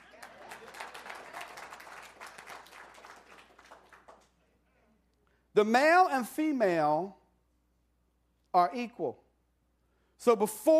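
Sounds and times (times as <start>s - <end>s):
audience clapping: 0.0s - 4.6s
speech: 5.6s - 7.2s, 8.5s - 9.2s, 10.2s - 10.7s.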